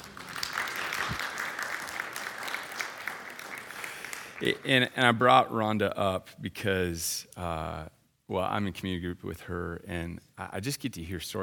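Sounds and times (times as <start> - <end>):
audience applause: 0.0 - 4.8
speech: 4.4 - 11.4.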